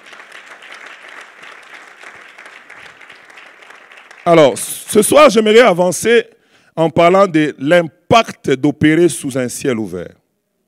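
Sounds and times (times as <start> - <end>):
audience applauding: 0.0 - 4.9
speech: 4.2 - 10.2.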